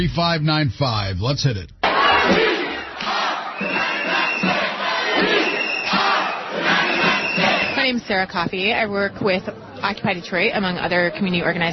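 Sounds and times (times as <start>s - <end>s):
speech: 0.0s - 2.5s, 7.9s - 11.7s
protest crowd chanting: 1.8s - 8.0s.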